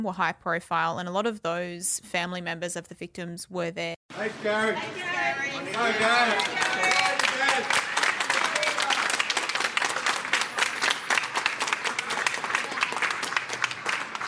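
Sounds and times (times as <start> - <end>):
speech: 0.0 - 6.6
supporters clapping outside: 5.6 - 14.2
supporters cheering and whooping outside: 5.8 - 9.6.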